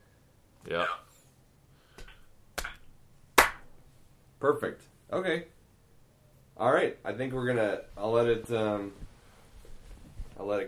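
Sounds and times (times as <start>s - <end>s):
hand claps to sync recorded voices: 2.0s - 3.8s
speech: 4.4s - 5.6s, 6.6s - 9.1s, 10.4s - 10.6s.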